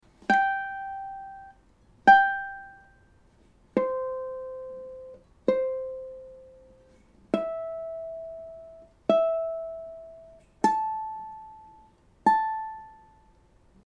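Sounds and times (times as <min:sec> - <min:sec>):
ukulele playing: 0:00.1 - 0:13.6.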